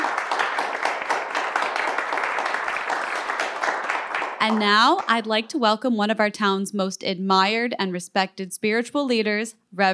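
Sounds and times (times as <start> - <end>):
crowd applause for a new mayor: 0.0 - 5.1
speech: 4.4 - 9.9.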